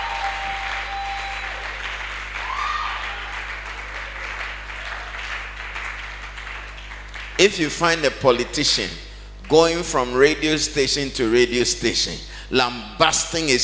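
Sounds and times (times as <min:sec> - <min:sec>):
audience clapping: 0:00.0 - 0:08.5, 0:09.4 - 0:10.0
speech: 0:07.4 - 0:13.6.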